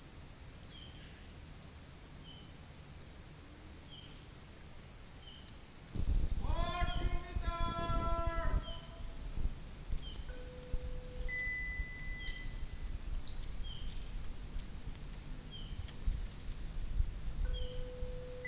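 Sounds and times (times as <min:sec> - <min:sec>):
birds: 0:06.4 - 0:09.2, 0:09.9 - 0:18.4.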